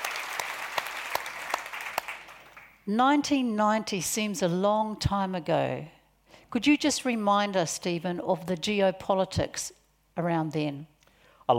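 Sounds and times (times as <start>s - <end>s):
audience applause at a festival welcoming a journalist: 0.0s - 2.8s
speech: 2.9s - 10.9s.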